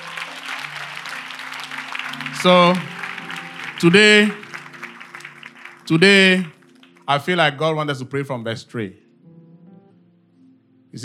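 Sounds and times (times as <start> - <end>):
audience clapping: 0.0 - 7.4
speech: 2.4 - 2.9, 3.8 - 4.4, 5.9 - 9.0.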